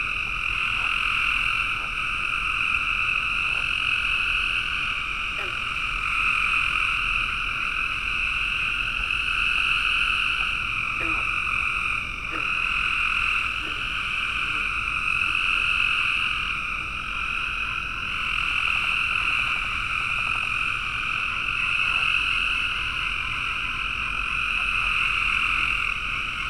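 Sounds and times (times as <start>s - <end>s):
frogs calling post-dusk in a bog in Raleigh NC: 0.0s - 26.4s.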